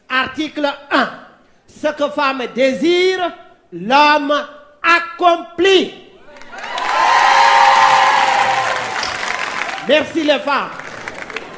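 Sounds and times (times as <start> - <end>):
speech: 0.2 - 1.2, 1.8 - 6.0, 9.9 - 10.8
live audience applause: 6.3 - 11.5
high-pitched audience cheering: 6.4 - 10.2.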